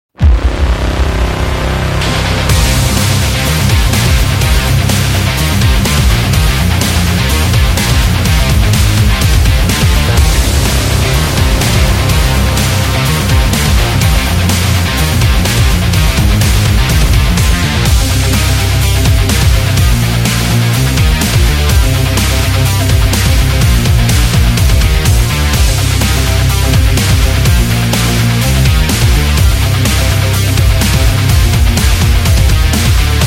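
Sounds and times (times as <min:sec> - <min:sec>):
racing: 0:01.0 - 0:33.2.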